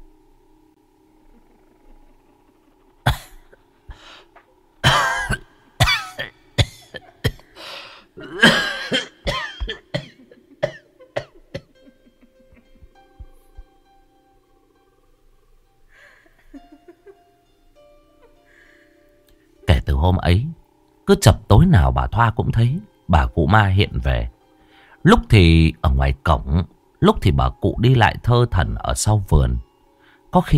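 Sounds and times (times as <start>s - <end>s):
elderly woman's throaty wheezes: 1.2s - 4.5s, 7.3s - 8.8s, 15.9s - 16.5s
elderly woman's harsh hacking cough: 3.0s - 3.6s, 4.8s - 7.5s, 8.2s - 12.2s
speech: 21.1s - 24.4s, 25.0s - 29.7s, 30.3s - 30.5s.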